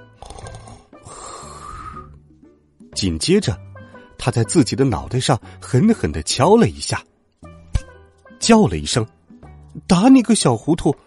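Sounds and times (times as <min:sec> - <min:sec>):
person imitating snores: 0:00.2 - 0:02.1
speech: 0:03.0 - 0:07.1, 0:08.4 - 0:09.2, 0:09.8 - 0:11.0.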